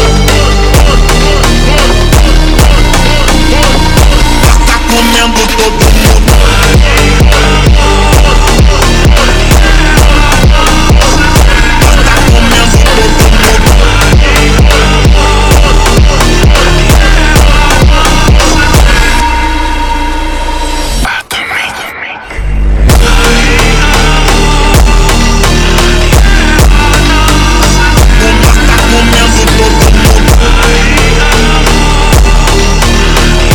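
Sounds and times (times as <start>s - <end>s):
funk music: 0.0s - 21.0s, 22.4s - 33.5s.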